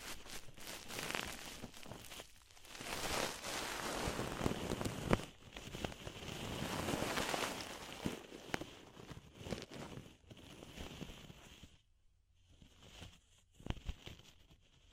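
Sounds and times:
deep ear cleaning rustle and scraping: 0.0 - 11.7.

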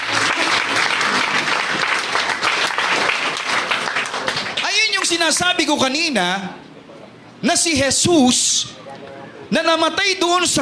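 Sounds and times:
church congregation clapping along during a worship service: 0.0 - 5.6
speech: 5.2 - 6.6, 7.4 - 10.5.

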